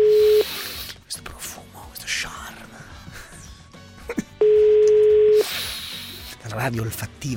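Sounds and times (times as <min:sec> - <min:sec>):
telephone ringing with a steady electronic tone: 0:00.0 - 0:00.4, 0:04.4 - 0:05.4
speech: 0:06.6 - 0:07.3.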